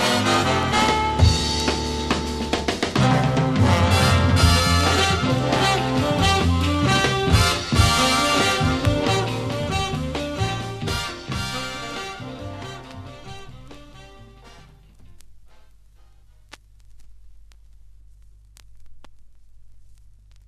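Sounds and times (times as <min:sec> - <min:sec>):
big band: 0:00.0 - 0:15.6.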